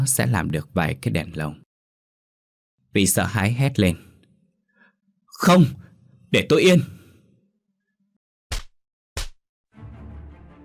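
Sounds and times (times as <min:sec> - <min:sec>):
speech: 0:00.0 - 0:01.6, 0:02.9 - 0:04.1, 0:05.4 - 0:07.0
hard slaps to the face: 0:08.5 - 0:09.4.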